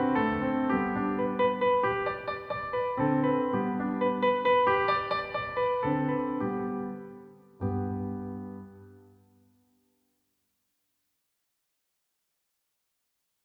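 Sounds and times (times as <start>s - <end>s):
piano sonata slow movement: 0.0s - 9.6s.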